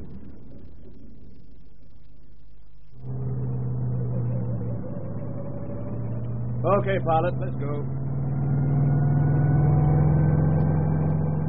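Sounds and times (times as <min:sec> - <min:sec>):
helicopter engine: 0:03.0 - 0:11.0
speech: 0:06.6 - 0:08.0.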